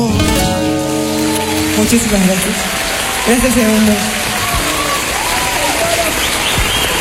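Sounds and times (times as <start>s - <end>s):
crowd voices: 0.0s - 6.9s
audience applause: 0.4s - 6.9s
speech: 1.8s - 4.3s.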